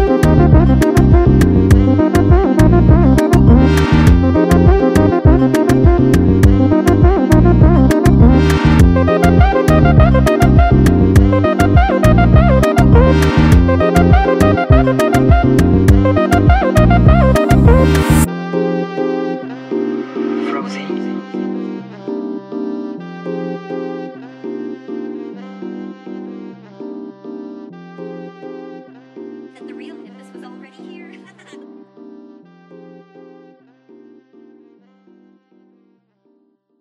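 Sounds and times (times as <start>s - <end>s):
sped-up Afro jazz: 0.0s - 27.2s.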